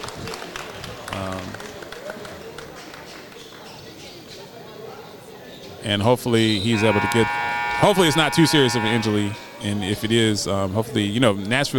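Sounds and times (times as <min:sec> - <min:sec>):
large crowd applauding: 0:00.0 - 0:03.7
speech: 0:05.8 - 0:11.7.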